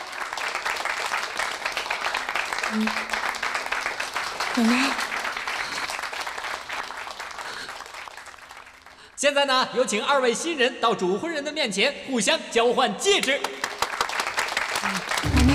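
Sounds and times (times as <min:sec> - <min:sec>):
audience applause: 0:00.0 - 0:09.1, 0:13.5 - 0:15.5
speech: 0:02.7 - 0:03.2, 0:04.6 - 0:05.0, 0:09.2 - 0:13.6.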